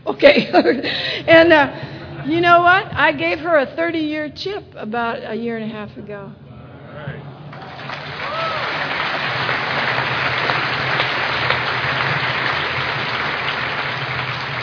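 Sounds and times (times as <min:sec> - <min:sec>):
speech: 0:00.2 - 0:06.4
whistles and cheers: 0:07.5 - 0:12.9
audience applause: 0:07.5 - 0:14.6.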